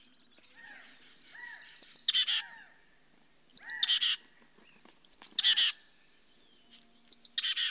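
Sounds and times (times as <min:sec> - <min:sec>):
oak titmouse calling: 0:00.6 - 0:02.7, 0:03.5 - 0:04.2, 0:05.0 - 0:07.6.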